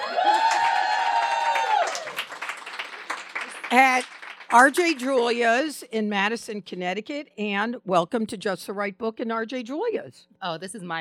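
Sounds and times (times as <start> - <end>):
live audience whooping at RJ Julia's bookstore in Madison, Connecticut: 0.0 - 3.5
live audience clapping at RJ Julia's bookstore in Madison, Connecticut: 0.0 - 5.2
speech: 3.7 - 11.0.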